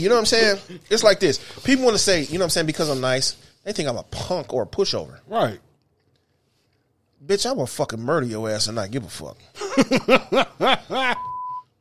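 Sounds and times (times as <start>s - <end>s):
speech: 0.0s - 5.7s, 7.2s - 11.3s
rhythmic voiced syllables like chuckling: 9.6s - 11.3s
censorship bleep over profanity: 11.1s - 11.7s.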